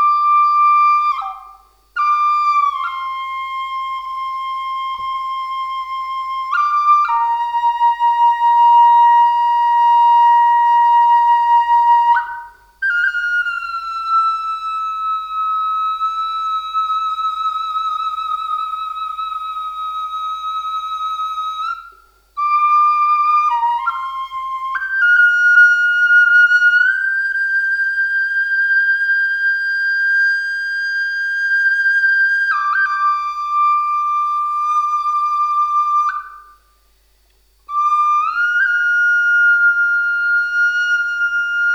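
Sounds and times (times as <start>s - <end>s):
puriri and walnut forest flute in G minor: 0.0s - 36.9s, 37.5s - 41.7s.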